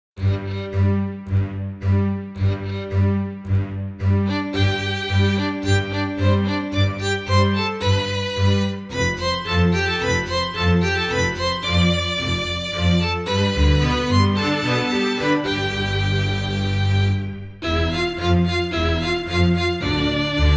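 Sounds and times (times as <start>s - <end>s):
quartet introduction: 0.2s - 20.5s.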